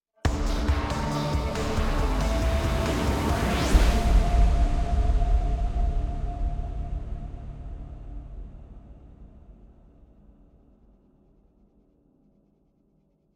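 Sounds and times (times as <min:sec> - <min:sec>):
desert-themed electronic music outro: 0:00.3 - 0:07.5.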